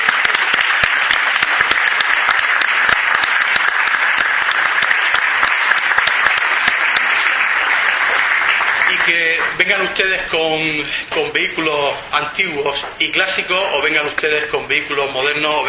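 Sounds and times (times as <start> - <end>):
crowd clapping: 0.0 - 10.2
speech: 9.1 - 15.6.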